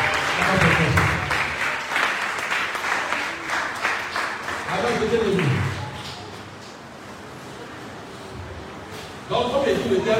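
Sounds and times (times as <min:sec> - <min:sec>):
church congregation clapping and acclaiming the Lord: 0:00.0 - 0:06.8.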